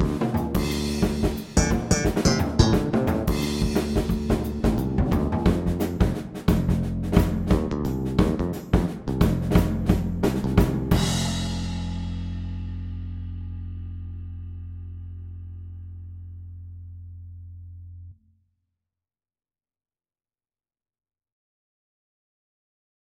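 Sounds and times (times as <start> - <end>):
jazz second line guitar playalong backing track: 0.0 - 13.1.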